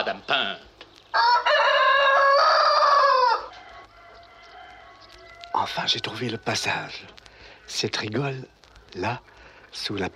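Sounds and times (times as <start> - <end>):
speech: 0.0 - 1.6, 5.6 - 10.1
rooster crowing: 1.1 - 7.6.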